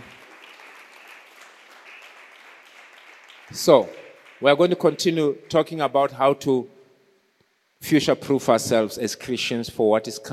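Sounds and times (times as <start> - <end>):
audience clapping: 0.0 - 5.8
speech: 3.5 - 6.8, 7.8 - 10.3.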